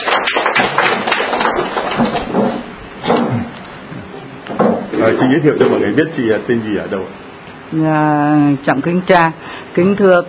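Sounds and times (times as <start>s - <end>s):
church congregation applauding to welcome people: 0.0s - 3.6s
speech: 5.2s - 10.2s.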